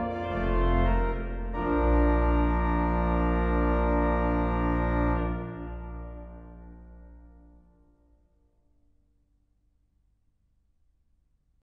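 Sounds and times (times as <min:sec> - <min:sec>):
grand organ playing a minuet transcription: 0:00.0 - 0:07.3.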